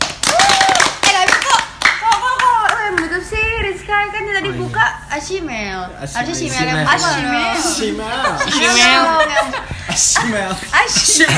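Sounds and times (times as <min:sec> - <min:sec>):
group clapping hands: 0:00.0 - 0:03.2
speech: 0:04.4 - 0:11.3
laughter: 0:08.0 - 0:11.3.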